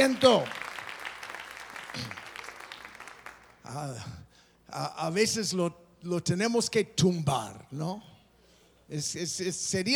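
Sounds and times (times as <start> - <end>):
speech: 0.0 - 0.6, 2.0 - 2.2, 3.7 - 8.1, 8.9 - 9.9
audience applause: 0.0 - 3.6.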